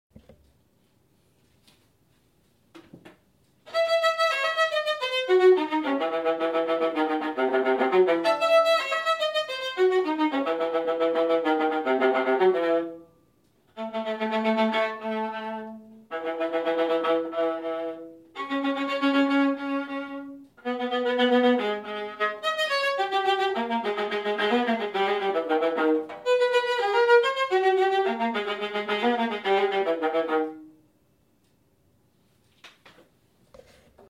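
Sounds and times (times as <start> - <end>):
viola: 3.6 - 30.8.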